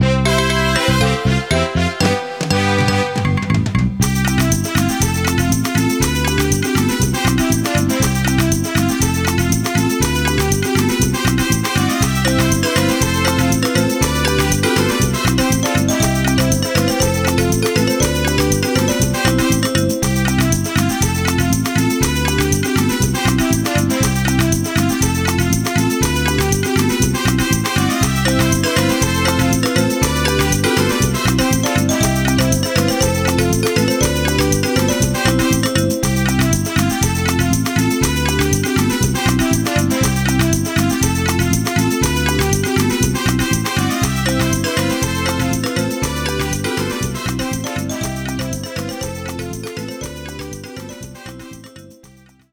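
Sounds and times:
minigame win jingle: 0:00.0 - 0:52.4.

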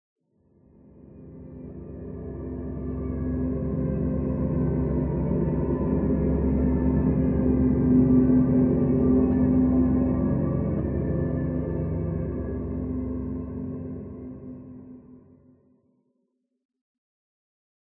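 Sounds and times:
library main synth pad: 0:01.0 - 0:15.4.

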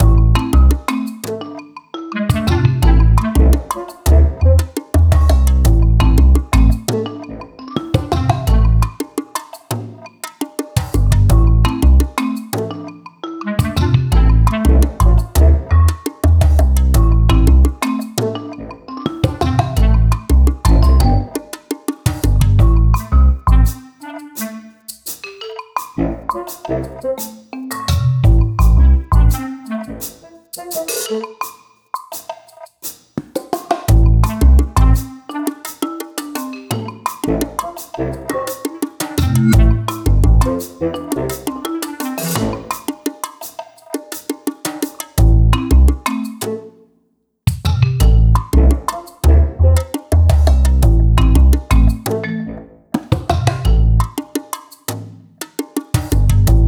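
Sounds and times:
jungle drum loop: 0:00.0 - 0:01.6, 0:02.2 - 0:07.2, 0:07.8 - 0:12.9, 0:13.6 - 0:23.8, 0:24.9 - 0:29.5, 0:30.6 - 0:46.6, 0:47.5 - 0:52.3, 0:53.0 - 0:56.6.

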